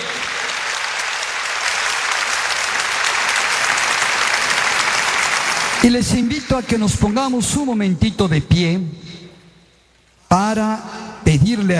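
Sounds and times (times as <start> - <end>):
audience applause: 0.0 - 7.2
speech: 5.8 - 9.2, 10.3 - 11.7.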